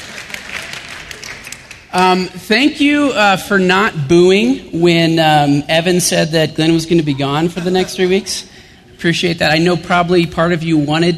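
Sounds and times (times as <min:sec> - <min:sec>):
light golf clap applause: 0:00.0 - 0:02.0
speech: 0:01.9 - 0:11.1
laughter: 0:07.0 - 0:09.4.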